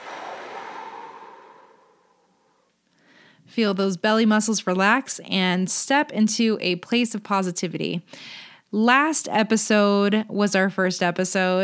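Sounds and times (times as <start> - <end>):
slow deep breath exhaled out through the mouth: 0.0 - 2.5
speech: 3.5 - 11.6.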